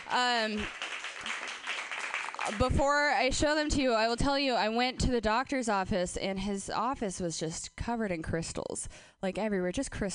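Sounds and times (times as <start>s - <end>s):
speech: 0.1s - 1.5s, 2.4s - 10.1s
comedy club audience applause: 0.2s - 2.6s.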